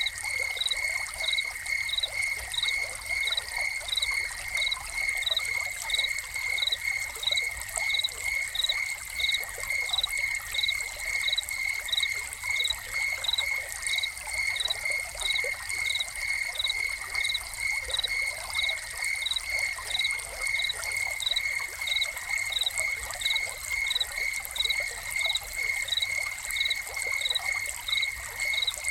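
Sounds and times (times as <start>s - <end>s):
cricket chirping: 0.0s - 28.9s
fountain water splashing and trickling: 0.0s - 28.9s.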